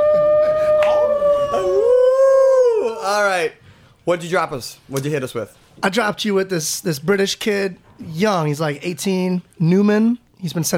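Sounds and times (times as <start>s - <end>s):
wolf howl sound effect: 0.0s - 3.1s
speech: 3.4s - 10.7s.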